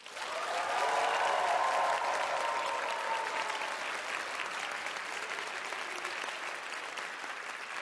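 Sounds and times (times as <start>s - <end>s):
audience applause in opera house: 0.0s - 7.8s.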